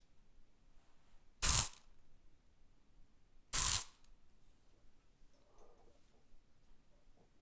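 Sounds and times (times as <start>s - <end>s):
spray: 1.4s - 1.8s, 3.6s - 4.0s.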